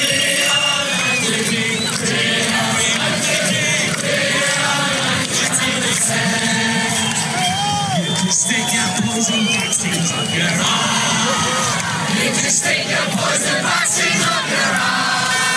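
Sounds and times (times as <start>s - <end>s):
crowd chanting at a political rally: 0.0s - 15.5s
whoops and cries: 6.9s - 9.4s, 10.9s - 11.9s.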